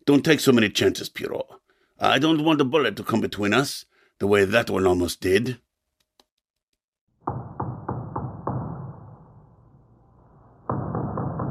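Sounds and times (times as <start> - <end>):
speech: 0.1 - 5.6
door being battered: 7.2 - 9.3, 10.6 - 11.4.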